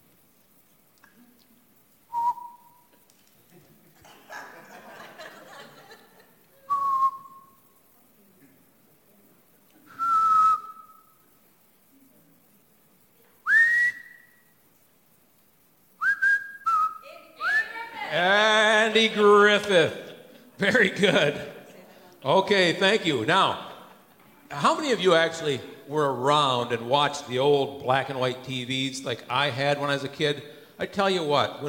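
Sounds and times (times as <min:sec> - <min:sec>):
person whistling a tune note by note: 0:02.1 - 0:02.9, 0:06.7 - 0:07.6, 0:09.9 - 0:11.0, 0:13.5 - 0:14.3, 0:16.0 - 0:17.6
laughter: 0:03.4 - 0:06.7, 0:17.4 - 0:25.2
speech: 0:19.0 - 0:20.0, 0:20.6 - 0:21.4, 0:22.2 - 0:23.6, 0:24.6 - 0:31.6.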